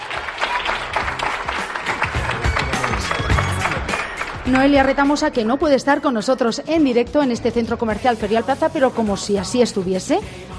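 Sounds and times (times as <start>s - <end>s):
audience applause: 0.0s - 4.8s
speech: 4.5s - 10.5s.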